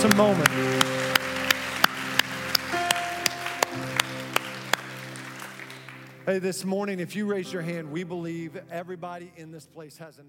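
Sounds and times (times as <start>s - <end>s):
round of applause: 0.0s - 6.3s
speech: 0.1s - 1.0s, 6.3s - 10.2s.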